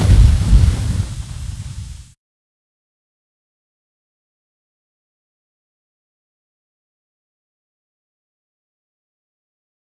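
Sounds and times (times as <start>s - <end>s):
fire: 0.0s - 2.2s.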